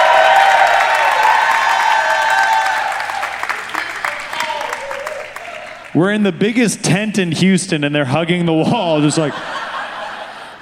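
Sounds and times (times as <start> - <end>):
audience applause: 0.0 - 6.2
speech: 6.0 - 9.6
laughter: 8.9 - 10.5.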